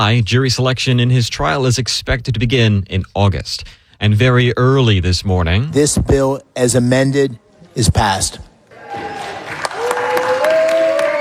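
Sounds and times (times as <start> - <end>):
speech: 0.0 - 9.1
lawmakers applauding: 8.7 - 11.1
senators cheering: 8.7 - 11.1.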